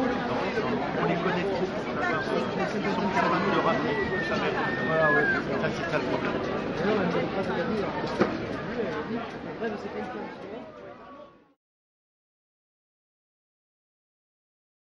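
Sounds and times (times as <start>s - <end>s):
market ambience: 0.0s - 11.6s.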